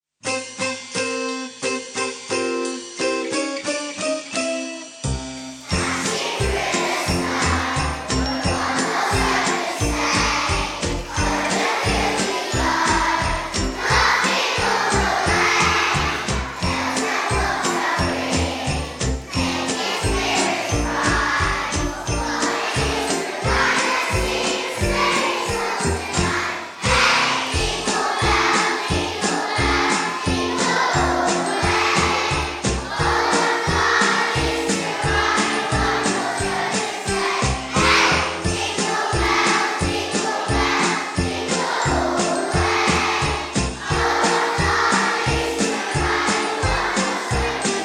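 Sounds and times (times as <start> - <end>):
Christmas song: 0.2 - 47.8.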